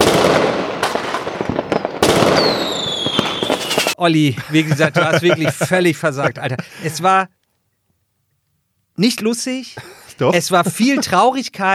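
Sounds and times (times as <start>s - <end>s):
fireworks crackling and popping: 0.0s - 4.0s
descending firework whistle: 1.6s - 4.0s
speech: 4.0s - 7.4s, 9.0s - 11.7s
laughter: 4.2s - 7.2s, 9.8s - 11.7s.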